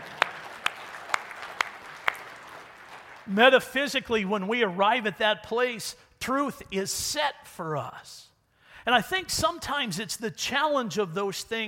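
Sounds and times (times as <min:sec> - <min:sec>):
sharp evenly spaced claps: 0:00.0 - 0:03.4
speech: 0:03.3 - 0:11.6.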